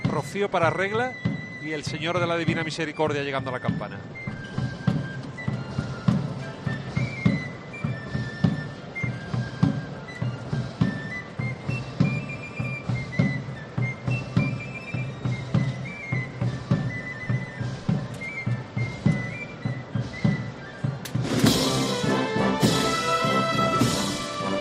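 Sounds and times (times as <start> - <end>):
processional band playing a march: 0.0 - 24.6
speech: 0.2 - 4.6.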